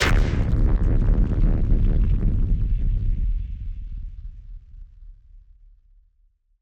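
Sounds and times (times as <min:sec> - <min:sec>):
explosion hit: 0:00.0 - 0:02.7.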